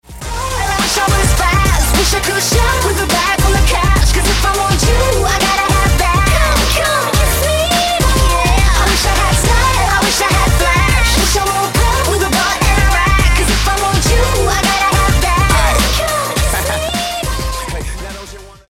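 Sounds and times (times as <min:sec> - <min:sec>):
funk music: 0:00.1 - 0:18.6
laughter: 0:00.9 - 0:18.5.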